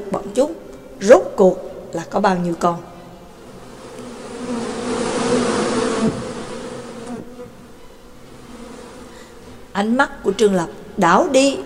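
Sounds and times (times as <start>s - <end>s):
speech: 0.0s - 2.9s, 9.8s - 11.6s
shrill buzzing of flying insect swarm: 3.3s - 9.7s.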